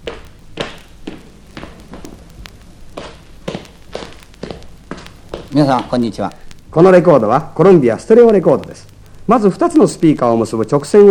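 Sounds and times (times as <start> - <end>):
footsteps of a man walking on a stereo test record: 0.0 - 7.0
speech: 5.5 - 11.1.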